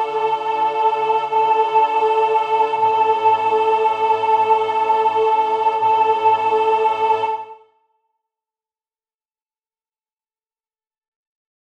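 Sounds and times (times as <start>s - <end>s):
soprano singing an adagio: 0.0s - 7.7s.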